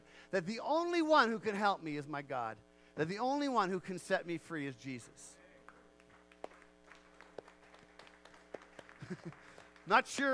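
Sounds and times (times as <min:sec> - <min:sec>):
speech: 0:00.3 - 0:05.4, 0:09.1 - 0:10.3
scattered hesitant claps: 0:05.6 - 0:10.3.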